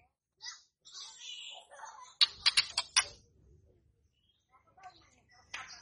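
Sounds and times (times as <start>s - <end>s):
White-rumped shama clicks: 2.2s - 3.2s.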